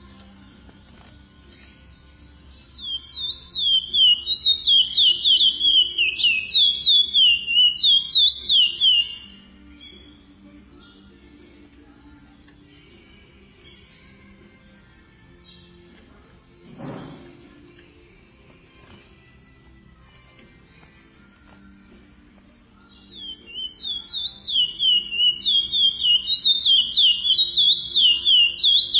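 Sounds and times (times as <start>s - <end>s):
chestnut-bellied seed finch song of rapid high whistles: 2.6s - 10.2s, 22.9s - 28.9s.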